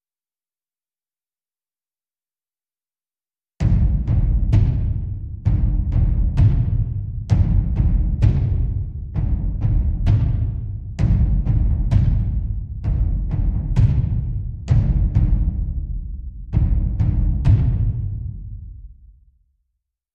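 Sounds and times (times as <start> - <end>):
deep drums loop: 3.6 - 19.0.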